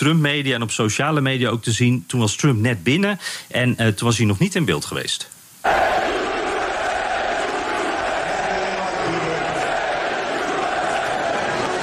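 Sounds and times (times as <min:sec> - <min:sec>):
speech: 0:00.0 - 0:05.9
crowd at a sports match chanting: 0:05.7 - 0:11.8.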